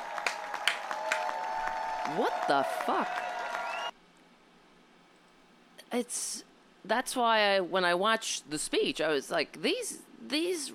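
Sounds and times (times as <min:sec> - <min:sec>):
audience clapping: 0:00.0 - 0:03.9
speech: 0:02.1 - 0:03.3, 0:05.9 - 0:10.7.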